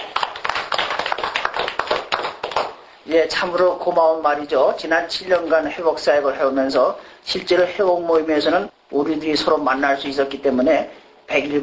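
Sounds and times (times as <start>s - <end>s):
clapping: 0.0s - 2.8s
speech: 3.1s - 11.6s.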